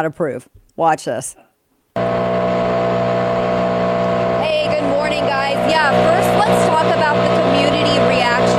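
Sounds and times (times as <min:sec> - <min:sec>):
speech: 0:00.0 - 0:01.4, 0:04.5 - 0:08.5
leaf blower running: 0:02.0 - 0:08.5.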